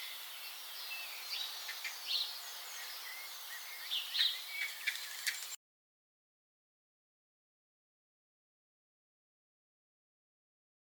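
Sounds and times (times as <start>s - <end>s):
great tit singing: 0.0s - 5.6s.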